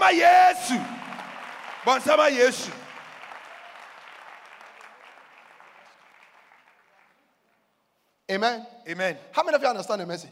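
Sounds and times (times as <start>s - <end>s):
audience clapping hands: 0.0s - 7.7s
speech: 0.1s - 1.1s, 1.8s - 2.8s, 8.3s - 10.3s.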